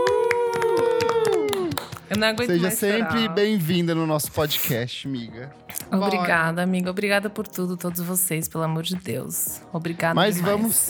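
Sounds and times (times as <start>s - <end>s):
people clapping: 0.0s - 3.3s
speech: 2.1s - 10.8s.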